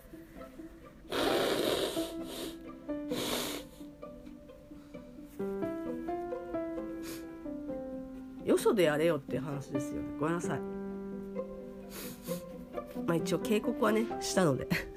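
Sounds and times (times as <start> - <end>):
music: 0.0 - 14.9
person blowing their nose: 1.1 - 3.9, 7.0 - 7.4, 11.9 - 12.6
speech: 8.6 - 10.7, 13.1 - 14.9.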